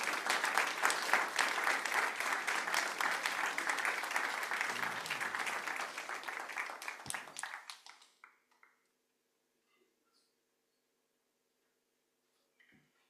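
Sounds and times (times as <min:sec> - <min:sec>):
audience applause: 0:00.0 - 0:08.9.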